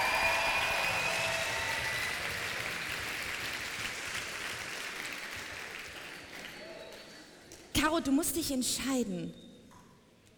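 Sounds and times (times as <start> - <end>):
audience applause: 0.0 - 7.3
speech: 7.8 - 9.5.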